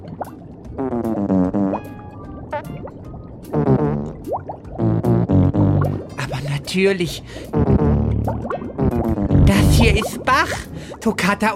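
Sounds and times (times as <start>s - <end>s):
fart noise from a trout: 0.8s - 1.8s, 3.5s - 4.2s, 4.8s - 5.9s, 7.5s - 10.0s
speech: 6.7s - 7.6s, 9.5s - 11.5s.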